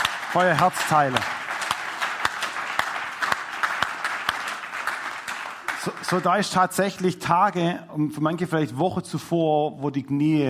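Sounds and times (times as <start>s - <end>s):
audience applause: 0.0s - 6.8s
speech: 0.4s - 1.4s, 5.8s - 10.4s.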